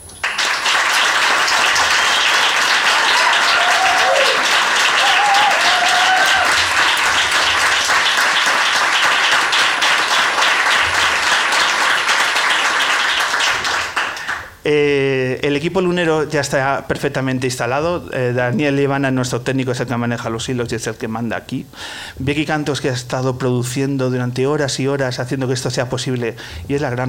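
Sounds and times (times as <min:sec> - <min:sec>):
audience applause: 0:00.2 - 0:14.6
speech: 0:14.7 - 0:27.0.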